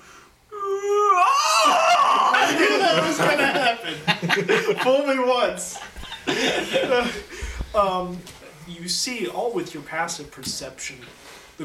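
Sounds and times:
person yawning: 0.5 - 2.5
laughter: 1.6 - 7.9
speech: 3.2 - 11.6.

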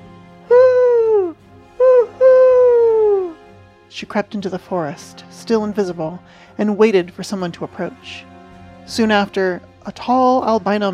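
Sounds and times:
voice imitating owl hoots: 0.5 - 3.5
speech: 4.0 - 8.3, 8.9 - 10.9.

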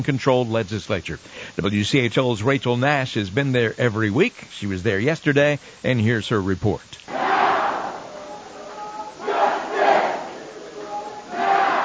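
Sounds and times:
speech: 0.0 - 7.2
crowd murmuring: 7.1 - 11.8
hundreds of protesters chanting inside the North Carolina General Assembly: 7.1 - 11.8.

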